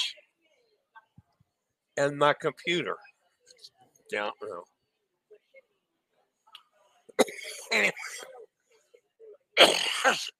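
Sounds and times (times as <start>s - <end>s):
speech: 2.0s - 3.1s, 4.1s - 4.7s, 7.2s - 8.4s, 9.6s - 10.3s
woman coughing: 7.2s - 8.4s, 9.6s - 10.3s.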